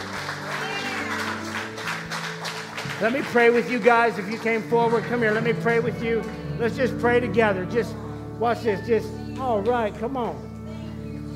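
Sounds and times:
audience hand clapping: 0.0 - 6.5
speech: 3.0 - 10.5.

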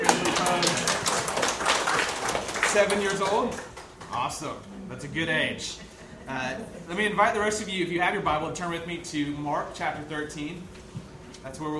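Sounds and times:
hand clapping: 0.0 - 4.4
speech: 2.8 - 10.8, 11.4 - 11.7.

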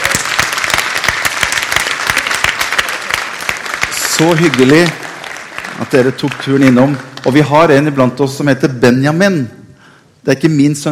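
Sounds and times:
audience applause: 0.0 - 7.8
speech: 4.2 - 5.0, 5.8 - 9.6, 10.2 - 10.8.

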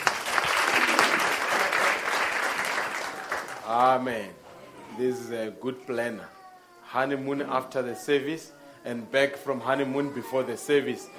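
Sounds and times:
round of applause: 0.0 - 4.0
speech: 3.7 - 4.4, 5.0 - 11.1.

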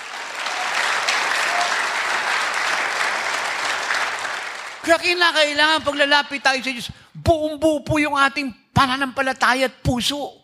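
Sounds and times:
audience applause: 0.0 - 4.9
speech: 4.9 - 10.4.

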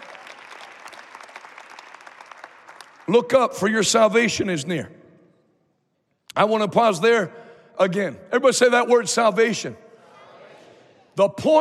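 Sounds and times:
audience clapping: 0.0 - 3.4
speech: 3.1 - 5.0, 6.4 - 9.9, 11.2 - 11.5.

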